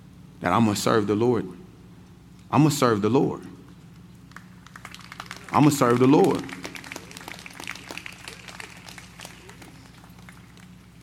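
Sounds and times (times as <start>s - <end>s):
speech: 0.4s - 1.6s, 2.5s - 3.5s, 5.5s - 6.6s
audience clapping: 4.3s - 11.0s.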